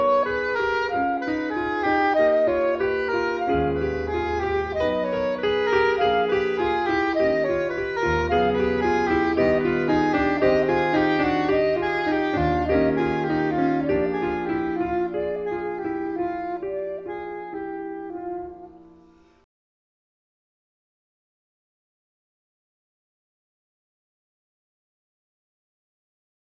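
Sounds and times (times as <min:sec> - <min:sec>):
soprano saxophone: 0:00.0 - 0:19.4.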